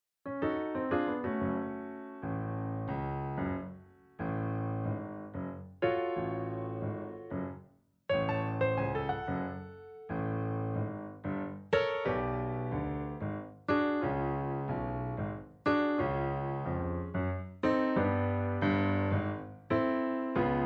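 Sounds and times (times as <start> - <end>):
piano song: 0.3 - 20.6.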